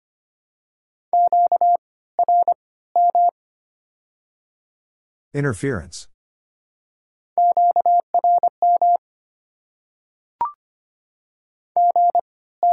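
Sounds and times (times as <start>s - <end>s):
slow telephone busy signal: 1.1s - 3.3s, 7.4s - 9.0s, 11.8s - 12.7s
speech: 5.3s - 6.1s.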